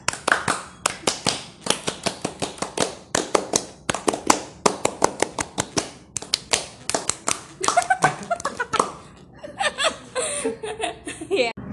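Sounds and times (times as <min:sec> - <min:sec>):
group clapping a scout rhythmic clapping pattern: 0:00.0 - 0:09.1
laughter: 0:07.6 - 0:11.5.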